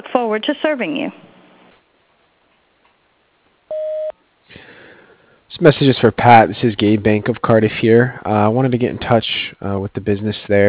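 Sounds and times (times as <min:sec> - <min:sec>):
speech: 0:00.2 - 0:01.3, 0:05.6 - 0:10.6
answering machine tone: 0:03.7 - 0:04.1.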